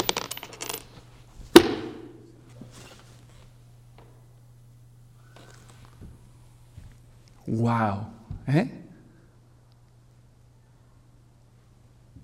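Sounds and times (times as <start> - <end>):
coins and keys dropped on a surface: 0.0 - 1.0
speech: 7.5 - 8.8.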